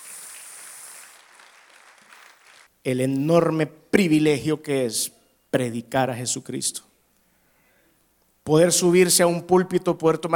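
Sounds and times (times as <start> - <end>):
church congregation applauding for the Lord: 0.0 - 2.7
speech: 2.8 - 6.9, 8.5 - 10.3.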